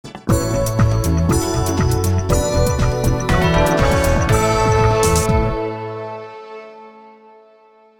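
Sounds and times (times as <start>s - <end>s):
Christmas promo bumper jingle: 0.3s - 6.5s.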